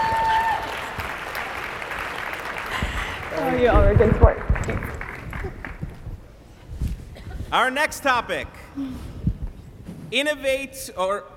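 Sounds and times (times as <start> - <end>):
audience round of applause: 0.0 - 6.0
speech: 3.5 - 5.6, 7.5 - 9.1, 10.1 - 11.3.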